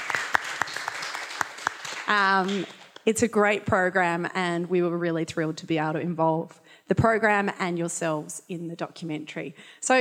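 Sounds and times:
crowd audience applause: 0:00.0 - 0:03.0
speech: 0:02.1 - 0:10.0.

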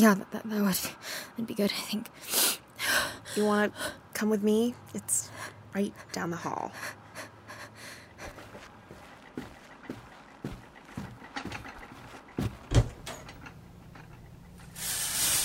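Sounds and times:
speech: 0:00.0 - 0:07.0
water pipes creaking and knocking: 0:08.0 - 0:15.4
steady hissing rush of shower water: 0:14.8 - 0:15.4.

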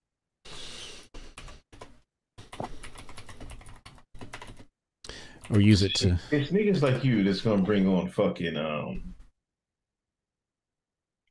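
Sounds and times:
typing on a computer keyboard: 0:01.4 - 0:04.7
speech: 0:05.5 - 0:09.2.

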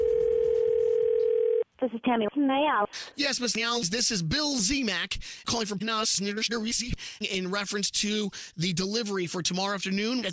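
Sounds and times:
telephone dial tone: 0:00.0 - 0:01.6
speech: 0:01.8 - 0:10.3.

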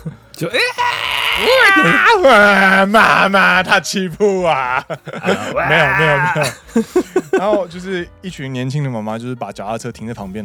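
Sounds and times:
speech: 0:00.0 - 0:10.4
children shrieking and squealing as they play: 0:00.6 - 0:03.2, 0:04.7 - 0:06.5
laughter: 0:04.4 - 0:07.7.

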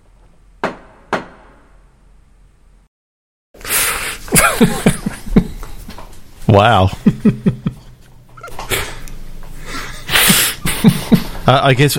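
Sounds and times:
gavel banging: 0:00.6 - 0:01.8
laughter: 0:04.3 - 0:05.7, 0:06.9 - 0:11.6
speech: 0:04.6 - 0:05.0, 0:06.5 - 0:07.7, 0:11.5 - 0:11.9.

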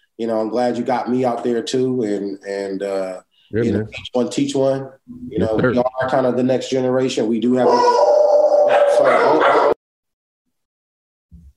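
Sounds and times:
speech: 0:00.2 - 0:08.2, 0:09.0 - 0:09.7
dog in a home office barking and yipping: 0:07.7 - 0:09.8.

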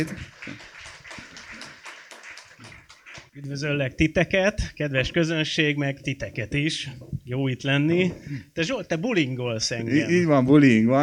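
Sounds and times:
speech: 0:00.0 - 0:00.3, 0:03.4 - 0:11.0
audience applauding: 0:00.0 - 0:03.6.

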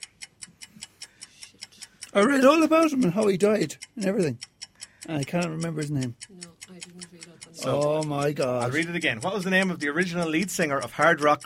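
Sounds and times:
quiz timer ticking: 0:00.0 - 0:11.4
speech: 0:02.1 - 0:11.4.

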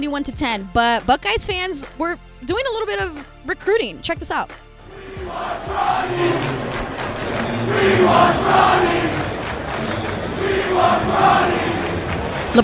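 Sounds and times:
speech: 0:00.0 - 0:04.6, 0:07.6 - 0:09.2, 0:10.6 - 0:11.7
stadium crowd chanting: 0:04.9 - 0:12.6.

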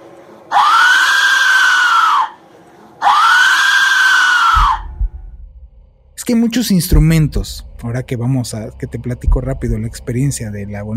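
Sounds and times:
Aztec death whistle screaming: 0:00.5 - 0:02.4, 0:03.0 - 0:04.9
speech: 0:06.3 - 0:10.9.

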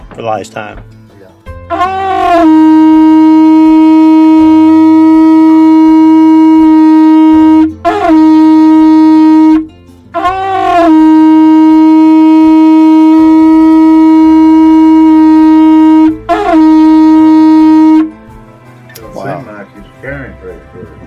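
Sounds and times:
brassy horn blown to call dogs: 0:01.6 - 0:18.3.

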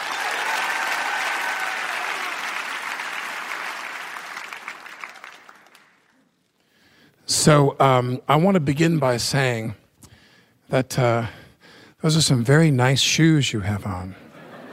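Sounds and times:
audience applauding to welcome author Michael Wolff: 0:00.0 - 0:06.2
speech: 0:07.4 - 0:09.8, 0:10.7 - 0:11.4, 0:12.0 - 0:14.2.

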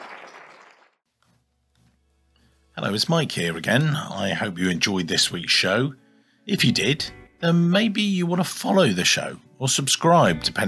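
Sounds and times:
audience applause: 0:00.0 - 0:01.0
speech: 0:02.8 - 0:10.6.

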